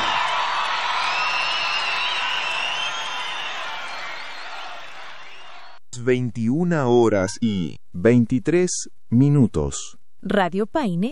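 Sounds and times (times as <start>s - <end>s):
crowd applauding: 0.0s - 5.8s
speech: 6.0s - 11.1s.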